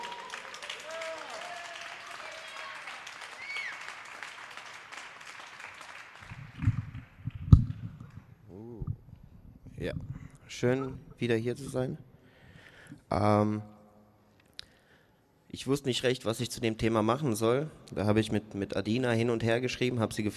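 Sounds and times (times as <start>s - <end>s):
audience applause: 0.0s - 7.4s
speech: 9.8s - 12.1s, 13.1s - 13.7s, 15.6s - 20.3s.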